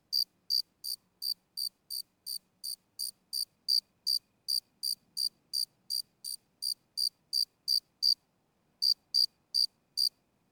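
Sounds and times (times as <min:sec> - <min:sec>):
cricket chirping: 0:00.1 - 0:08.2, 0:08.8 - 0:10.1.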